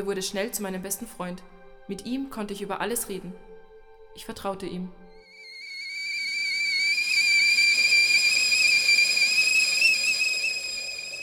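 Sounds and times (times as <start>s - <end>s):
speech: 0.0s - 3.5s, 4.2s - 5.0s
kettle whistling on the stove: 5.2s - 11.2s.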